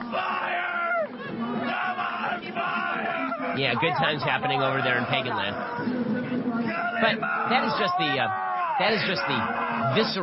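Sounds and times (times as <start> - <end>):
crowd cheering: 0.0 - 10.2
man shouting a rhythmic chant: 3.0 - 5.8, 6.6 - 10.2
speech: 3.6 - 10.2.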